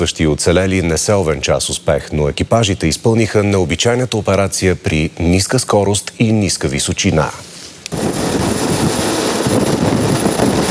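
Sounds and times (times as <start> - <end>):
speech: 0.0 - 8.2
Cougar military helicopter flying: 7.9 - 10.6.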